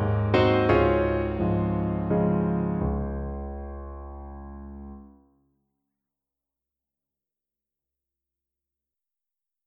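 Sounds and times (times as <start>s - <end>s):
piano concerto in B-flat minor: 0.0s - 5.1s.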